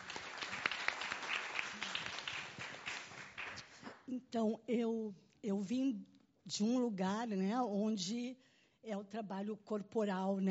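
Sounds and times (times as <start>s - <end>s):
audience applause: 0.0s - 3.9s
speech: 4.1s - 10.4s.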